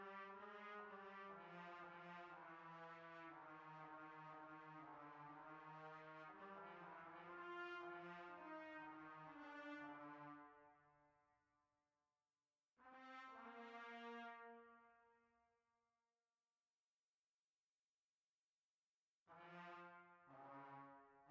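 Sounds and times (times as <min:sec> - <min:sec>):
classical trumpet: 0:00.0 - 0:10.7, 0:12.9 - 0:14.9, 0:19.3 - 0:21.2.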